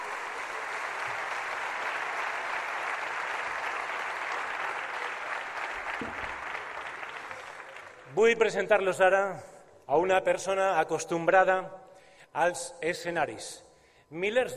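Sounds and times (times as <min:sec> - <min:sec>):
audience applause: 0:00.0 - 0:08.1
speech: 0:08.2 - 0:14.5.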